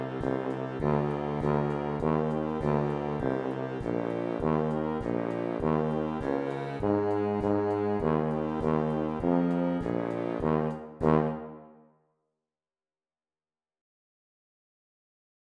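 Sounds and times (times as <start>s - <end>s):
tuba: 0.0s - 11.9s.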